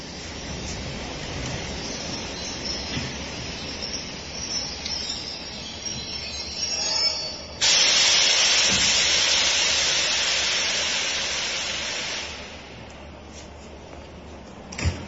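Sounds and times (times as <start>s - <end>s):
special train with tank cars carrying sea water rolling along rails: 0.0s - 15.0s
faint high metallic squeals: 2.4s - 7.6s.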